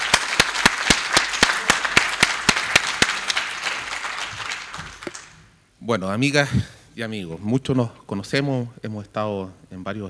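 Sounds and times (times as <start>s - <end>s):
audience applause: 0.0s - 5.4s
speech: 5.9s - 10.0s.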